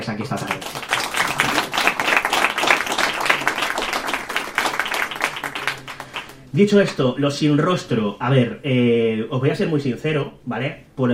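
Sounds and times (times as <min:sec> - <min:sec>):
speech: 0:00.0 - 0:00.8, 0:06.5 - 0:11.1
audience applause: 0:00.4 - 0:06.5.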